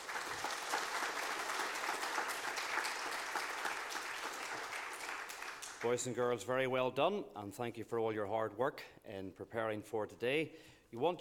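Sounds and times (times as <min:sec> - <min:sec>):
audience applause: 0:00.0 - 0:06.0
speech: 0:05.8 - 0:11.2.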